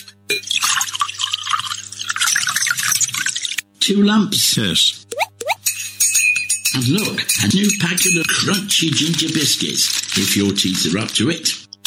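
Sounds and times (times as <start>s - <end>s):
speech: 0.3s - 0.6s, 3.9s - 5.0s, 6.8s - 11.7s
tea pouring from a pot: 0.4s - 3.6s.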